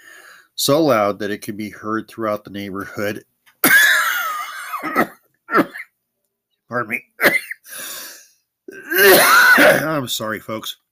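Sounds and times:
speech: 0.6s - 3.3s, 6.7s - 7.4s, 9.0s - 10.8s
person coughing: 3.6s - 5.9s, 7.2s - 7.7s, 8.7s - 10.0s.

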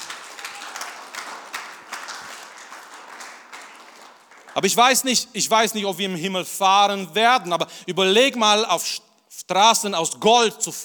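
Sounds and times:
audience applause: 0.0s - 4.8s
speech: 4.6s - 10.8s.

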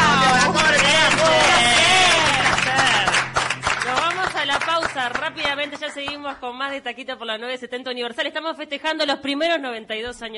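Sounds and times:
loud applause: 0.0s - 6.0s
speech: 6.4s - 10.3s.

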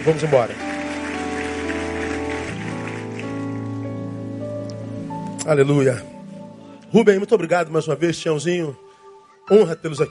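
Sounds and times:
speech: 0.0s - 0.7s, 5.5s - 6.1s, 6.9s - 8.8s, 9.5s - 10.0s
audience applauding: 0.0s - 3.8s.

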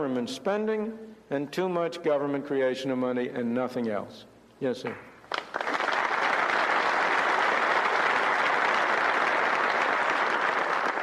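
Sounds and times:
speech: 0.0s - 5.1s
crowd applauding: 5.3s - 11.0s.

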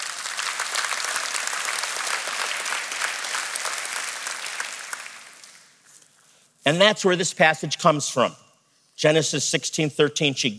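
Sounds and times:
audience applause: 0.0s - 5.8s
speech: 6.6s - 8.4s, 9.0s - 10.5s.

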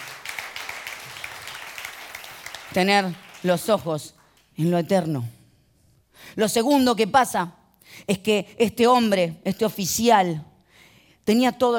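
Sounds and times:
audience applauding: 0.0s - 3.8s
speech: 2.7s - 5.4s, 6.2s - 10.5s, 11.2s - 11.7s.

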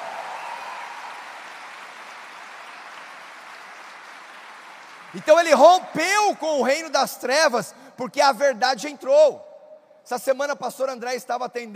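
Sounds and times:
audience applause: 0.0s - 5.8s
speech: 5.1s - 9.5s, 10.1s - 11.7s.

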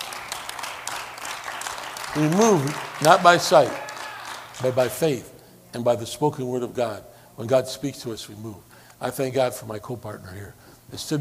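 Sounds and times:
audience clapping: 0.0s - 5.3s
speech: 2.1s - 3.8s, 4.6s - 11.1s.

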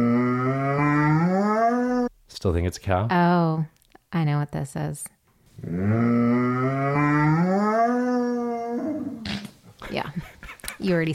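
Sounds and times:
basset hound howling: 0.0s - 2.1s, 6.4s - 9.2s
speech: 2.4s - 7.8s, 9.9s - 11.1s.

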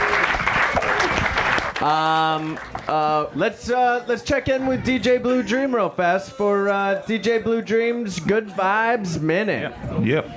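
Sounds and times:
round of applause: 0.0s - 3.2s
speech: 1.8s - 10.3s.

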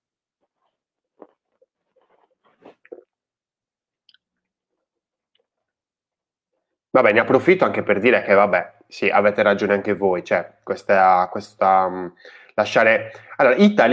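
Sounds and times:
person drinking with gulps and swallowing: 1.1s - 3.3s
speech: 7.0s - 13.9s.

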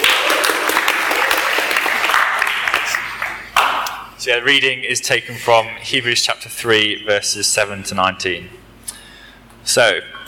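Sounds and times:
church audience applause welcoming a reader for a Bible reading: 0.0s - 3.8s
speech: 4.3s - 8.6s, 9.6s - 10.2s.

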